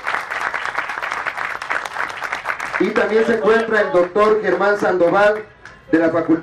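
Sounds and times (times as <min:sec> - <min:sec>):
audience applause: 0:00.0 - 0:04.0
speech: 0:02.8 - 0:06.4.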